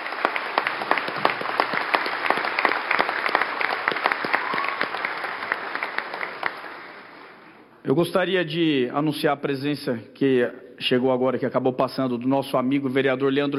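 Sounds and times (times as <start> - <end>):
audience applause: 0.0 - 7.5
speech: 7.9 - 13.5.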